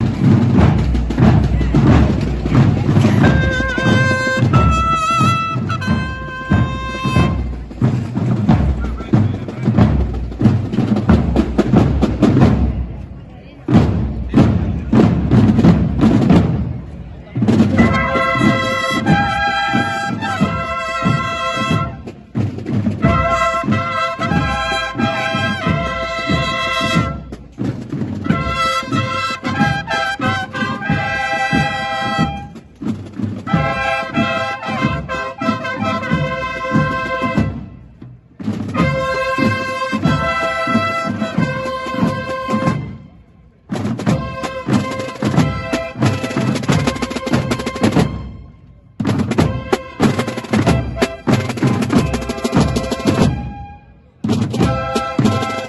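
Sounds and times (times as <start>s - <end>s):
band of bugles and drums: 0.0s - 55.6s.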